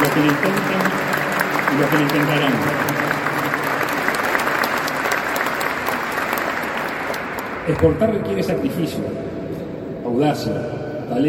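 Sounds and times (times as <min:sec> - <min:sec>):
audience applause: 0:00.0 - 0:07.9
speech: 0:00.2 - 0:00.9, 0:01.7 - 0:03.1, 0:07.7 - 0:09.4, 0:10.1 - 0:11.2.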